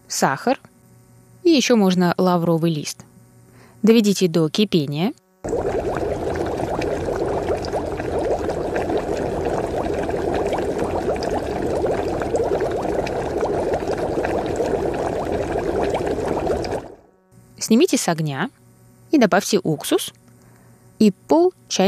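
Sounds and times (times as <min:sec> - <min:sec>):
speech: 0:00.1 - 0:00.7, 0:01.5 - 0:03.1, 0:03.8 - 0:05.6, 0:17.7 - 0:20.2, 0:21.0 - 0:21.8
water pouring into a small saucepan: 0:05.4 - 0:17.0.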